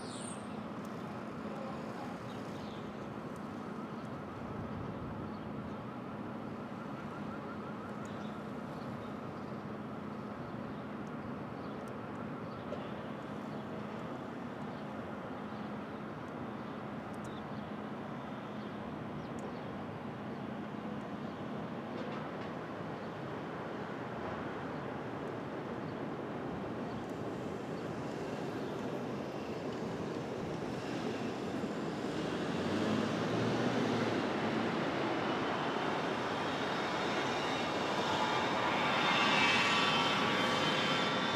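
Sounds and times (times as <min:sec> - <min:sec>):
distant-sounding street traffic at dawn in Brooklyn: 0:00.0 - 0:41.3
passing vehicle or aircraft: 0:30.8 - 0:41.3.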